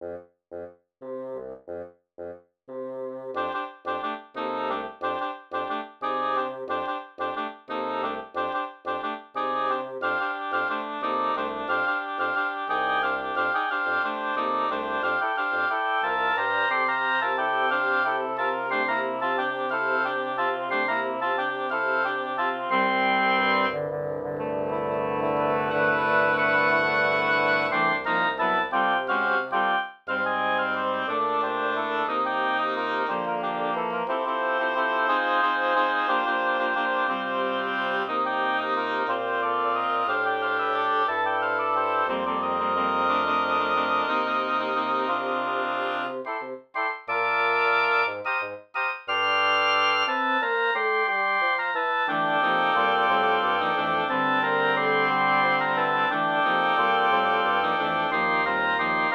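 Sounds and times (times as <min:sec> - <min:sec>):
waltz music: 0:00.0 - 0:59.1.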